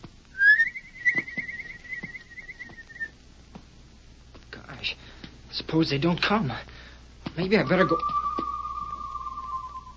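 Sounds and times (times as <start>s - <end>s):
human whistled signal with warbling trill: 0.4s - 3.1s, 7.6s - 9.9s
speech: 5.7s - 6.7s, 7.4s - 8.2s.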